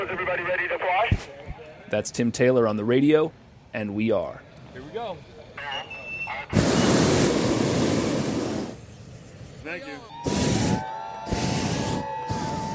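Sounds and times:
speech: 0.0 - 6.8, 9.6 - 11.4
hot air balloon burners blasting: 6.4 - 12.7.

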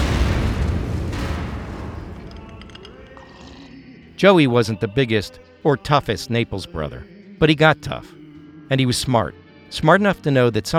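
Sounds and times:
car bomb explosion: 0.0 - 4.2
speech: 4.2 - 10.7.

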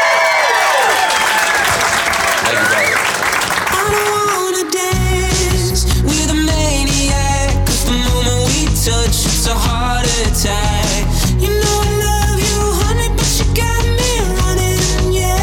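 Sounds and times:
audience clapping and whooping for a rapper: 0.0 - 4.7
music: 4.3 - 15.4.

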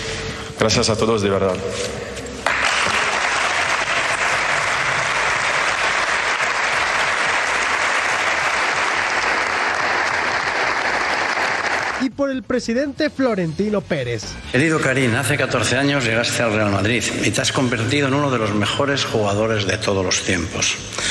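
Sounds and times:
speech: 0.6 - 2.0, 12.3 - 21.0
applause: 2.4 - 12.1.

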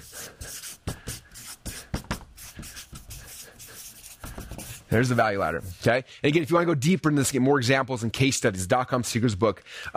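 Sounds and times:
writing by hand: 0.0 - 5.8
speech: 4.9 - 9.9.

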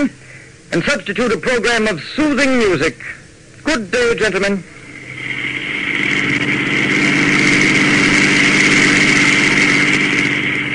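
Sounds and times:
speech: 0.0 - 4.8
car engine running while driving: 4.6 - 10.7.

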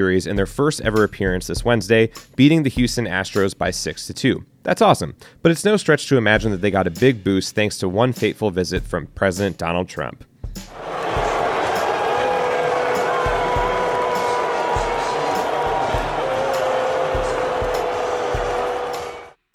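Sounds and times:
speech: 0.0 - 10.8
stadium crowd booing: 10.8 - 19.4.

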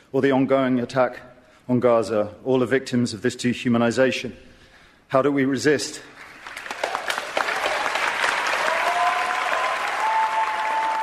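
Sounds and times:
speech: 0.1 - 4.5, 5.1 - 6.2
partial audience applause: 6.1 - 11.0.

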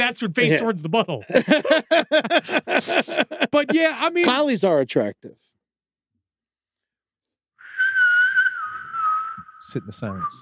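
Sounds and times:
speech: 0.0 - 5.5, 9.7 - 10.3
laughter: 1.2 - 4.1
person whistling a television theme tune: 7.6 - 10.3.

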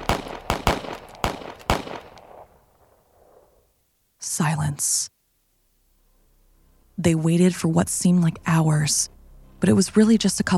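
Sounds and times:
soldiers' gunfire into a snow cave: 0.0 - 3.6
speech: 4.4 - 5.2, 7.0 - 10.5.

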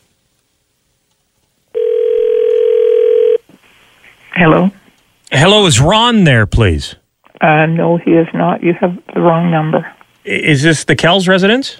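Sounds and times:
telephone dial tone: 1.8 - 3.4
faint handset noise: 1.8 - 3.5
speech: 4.4 - 4.8, 5.6 - 11.7.

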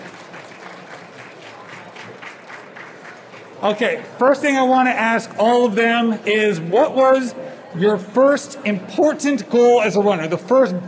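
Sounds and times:
audience applause: 0.0 - 3.9
speech: 3.6 - 10.8.

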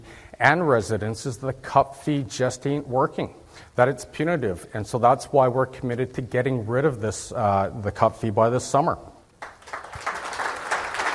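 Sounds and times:
speech: 0.4 - 9.1
crowd applause in the room: 9.4 - 11.1.

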